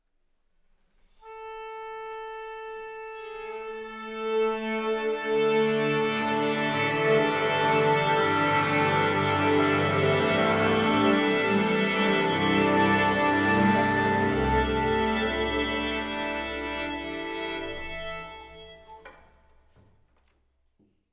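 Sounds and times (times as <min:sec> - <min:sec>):
orchestra tuning: 0:01.2 - 0:19.8.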